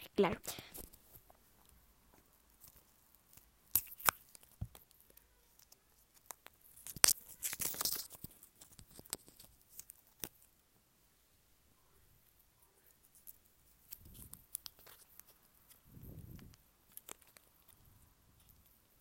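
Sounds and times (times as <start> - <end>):
speech: 0.2 - 0.7
piece of chewing gum being unwrapped: 2.5 - 10.5, 13.0 - 18.9.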